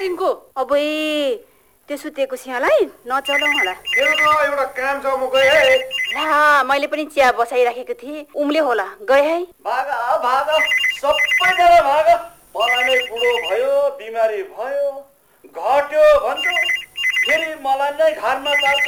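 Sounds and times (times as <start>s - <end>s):
speech: 0.2s - 18.8s
telephone ringing with a melodic ringtone: 3.3s - 6.4s, 10.5s - 11.9s, 12.6s - 13.6s, 16.4s - 18.8s.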